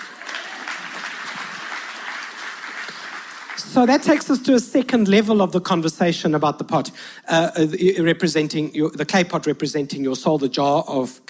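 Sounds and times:
crowd clapping: 0:00.0 - 0:04.4
speech: 0:03.6 - 0:11.2.

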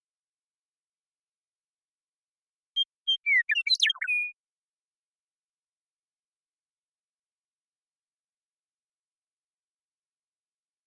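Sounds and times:
Western meadowlark song: 0:02.8 - 0:04.4.

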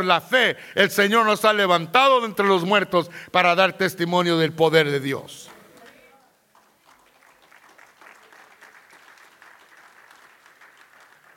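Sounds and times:
speech: 0:00.0 - 0:05.5
subdued audience applause: 0:06.5 - 0:11.3.

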